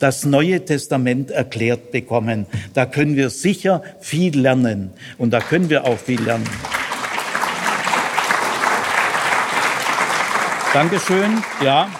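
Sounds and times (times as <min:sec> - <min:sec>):
speech: 0:00.0 - 0:06.8, 0:10.8 - 0:11.9
audience clapping: 0:05.3 - 0:11.9.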